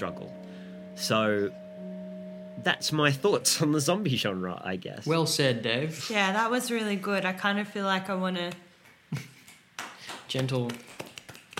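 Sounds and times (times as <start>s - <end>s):
speech: 0.0s - 0.4s, 1.0s - 1.6s, 2.6s - 9.3s, 10.3s - 10.9s
soft scattered claps: 8.5s - 11.5s.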